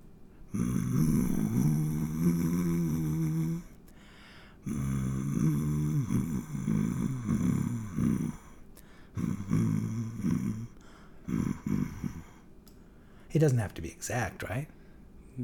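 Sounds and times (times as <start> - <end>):
person humming a slow hymn tune in a low gravelly voice: 0.5 - 3.8, 4.6 - 12.5
speech: 13.4 - 14.8.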